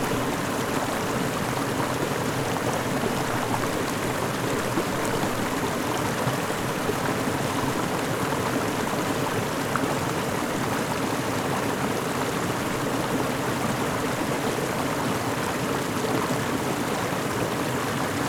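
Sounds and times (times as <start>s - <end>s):
river flowing: 0.0s - 18.2s.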